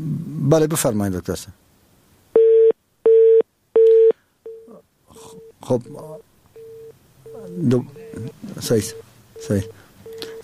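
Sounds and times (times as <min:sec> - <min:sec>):
speech: 0:00.0 - 0:01.6, 0:05.7 - 0:06.1, 0:07.6 - 0:09.8
telephone tone on a cut-off line: 0:02.4 - 0:05.6, 0:06.6 - 0:10.4.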